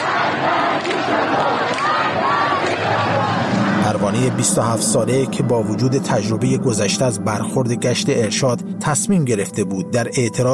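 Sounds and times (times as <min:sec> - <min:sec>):
protest crowd chanting slogans in a street: 0:00.0 - 0:04.8
speech: 0:04.1 - 0:10.5.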